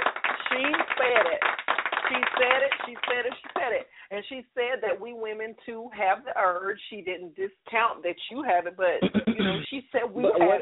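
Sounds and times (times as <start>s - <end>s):
applause button sound effect: 0.0s - 3.7s
speech: 0.5s - 10.6s.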